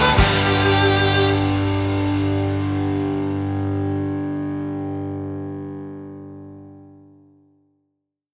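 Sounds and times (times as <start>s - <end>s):
Celtic rock band playing a reel: 0.0s - 5.6s.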